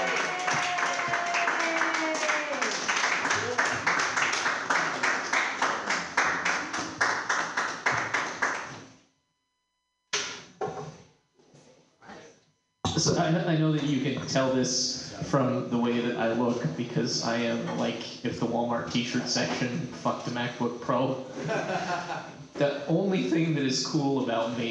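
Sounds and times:
comedy show audience applauding the first comedy team: 0:00.0 - 0:08.8
speech: 0:13.3 - 0:24.6
laughter: 0:21.3 - 0:23.7.

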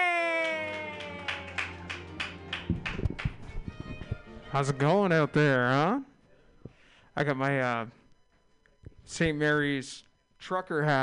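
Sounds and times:
audience clapping: 0:00.0 - 0:03.7
speech: 0:04.5 - 0:06.1, 0:07.2 - 0:08.0, 0:09.1 - 0:11.0.

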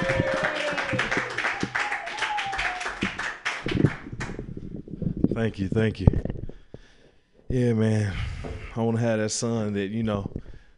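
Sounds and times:
voices cheering: 0:00.0 - 0:03.4
audience clapping for a comedian at a stand-up comedy show: 0:00.0 - 0:04.5
speech: 0:05.4 - 0:06.3, 0:07.5 - 0:08.2, 0:08.8 - 0:10.4.

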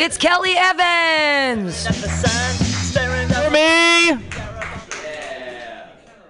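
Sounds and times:
speech: 0:00.0 - 0:04.3
audience clapping: 0:01.8 - 0:06.2.

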